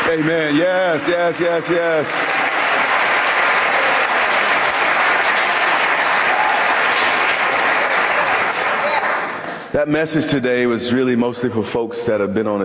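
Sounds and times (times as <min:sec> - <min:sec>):
large crowd clapping: 0:00.0 - 0:09.7
speech: 0:00.1 - 0:02.6, 0:09.7 - 0:12.6.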